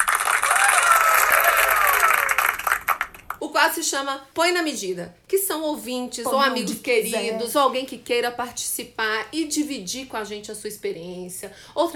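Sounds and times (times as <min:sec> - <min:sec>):
round of applause: 0:00.0 - 0:03.4
speech: 0:03.6 - 0:11.9.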